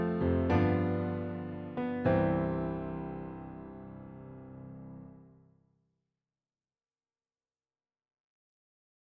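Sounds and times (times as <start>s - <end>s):
chord progression: 0.0s - 5.2s.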